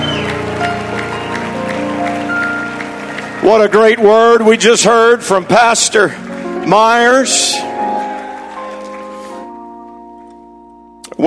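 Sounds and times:
church audience applause: 0:00.0 - 0:09.6
organ or keyboard tones: 0:00.0 - 0:11.2
speech: 0:03.4 - 0:07.7.

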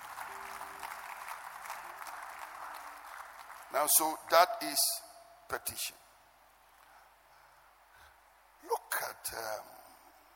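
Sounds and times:
audience clapping: 0:00.0 - 0:04.4
speech: 0:03.7 - 0:06.0, 0:09.2 - 0:09.8.

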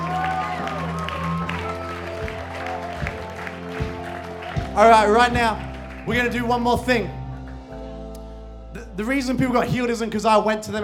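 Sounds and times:
audience clapping: 0:00.0 - 0:07.3
speech: 0:04.8 - 0:07.2, 0:09.0 - 0:10.8.

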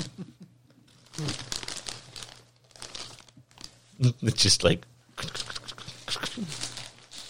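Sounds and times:
munching party mix: 0:00.9 - 0:02.2, 0:05.2 - 0:07.2
crinkling plastic bag of party mix: 0:00.9 - 0:03.9, 0:05.3 - 0:07.2
speech: 0:04.0 - 0:05.3, 0:06.4 - 0:06.6.

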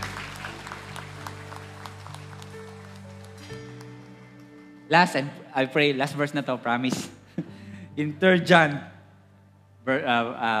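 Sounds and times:
church congregation scattered hand claps: 0:00.0 - 0:04.9
speech: 0:04.9 - 0:07.2, 0:08.0 - 0:08.9, 0:09.8 - 0:10.5.

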